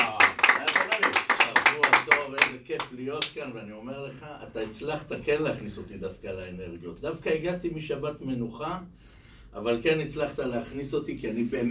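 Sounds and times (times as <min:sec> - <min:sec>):
audience applause for a yeshiva composer at a live event: 0:00.0 - 0:02.5
speech: 0:02.3 - 0:11.7.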